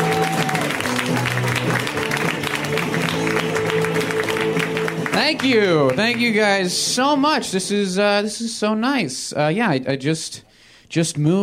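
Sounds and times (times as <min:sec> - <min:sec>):
comedy club audience clapping for a comic: 0:00.0 - 0:07.8
speech: 0:05.3 - 0:11.4.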